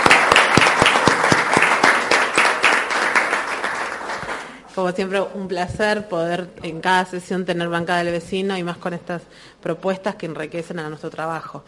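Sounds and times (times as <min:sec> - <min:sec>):
crowd applauding: 0:00.0 - 0:04.6
speech: 0:04.8 - 0:11.6.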